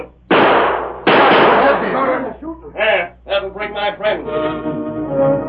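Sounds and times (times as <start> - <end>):
speech: 0.0 - 0.2, 1.8 - 5.3
gunshots: 0.3 - 2.2.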